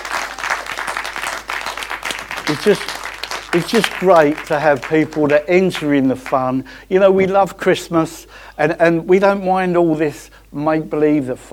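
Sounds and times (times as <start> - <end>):
audience applause at a Christmas show: 0.0 - 6.5
speech: 2.5 - 3.0, 3.6 - 11.5.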